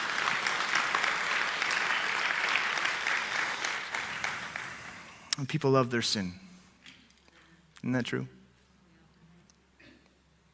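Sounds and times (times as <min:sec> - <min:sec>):
audience clapping: 0:00.0 - 0:05.2
speech: 0:05.4 - 0:06.4, 0:07.8 - 0:08.4.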